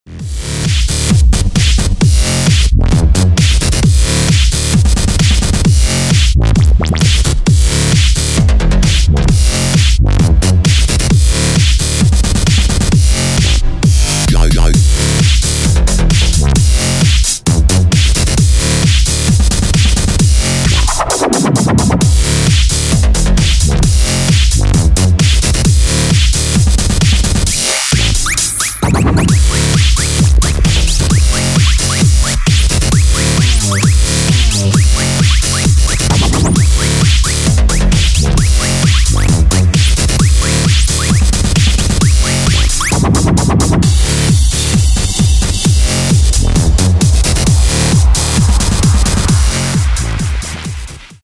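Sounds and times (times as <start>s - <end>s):
electro dance music: 0.1s - 51.2s.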